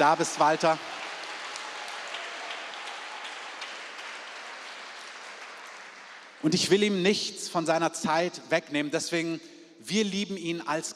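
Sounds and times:
speech: 0.0 - 1.0, 6.4 - 10.9
audience applause: 0.0 - 6.5.

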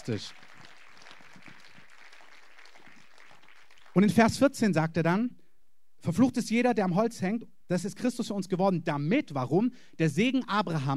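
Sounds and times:
speech: 0.0 - 0.5, 4.0 - 5.4, 6.0 - 10.9
audience applause: 0.0 - 4.1.

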